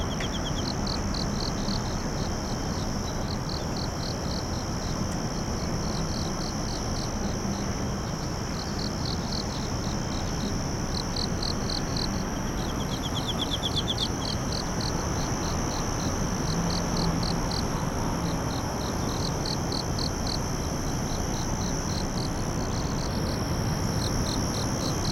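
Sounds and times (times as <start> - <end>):
insect chirping: 0.0 - 25.1.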